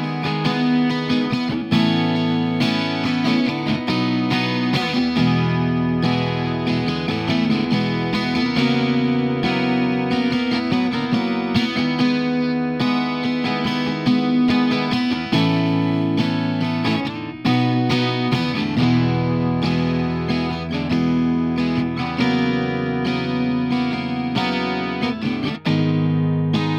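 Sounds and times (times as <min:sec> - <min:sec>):
guitar improvisation: 0:00.0 - 0:26.7.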